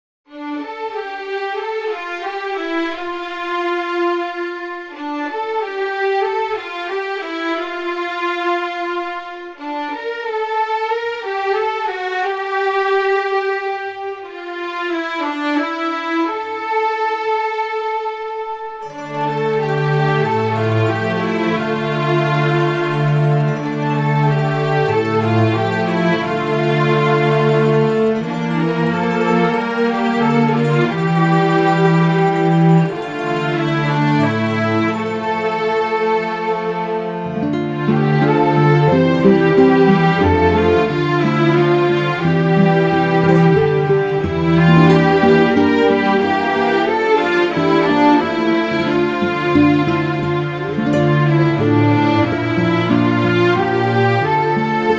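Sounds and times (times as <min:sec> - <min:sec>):
strings: 0:00.3 - 0:54.9.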